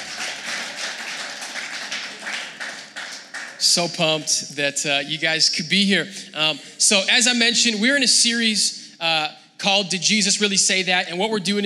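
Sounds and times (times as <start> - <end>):
applause: 0.0 - 4.2
speech: 3.6 - 11.6.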